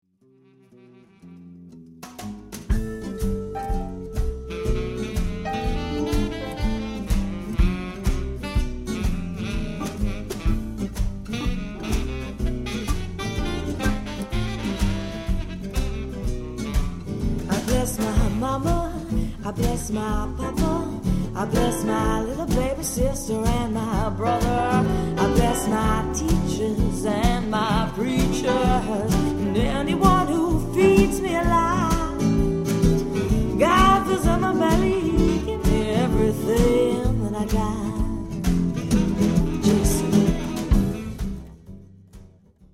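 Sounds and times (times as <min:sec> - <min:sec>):
jazz music: 0:00.7 - 0:42.4.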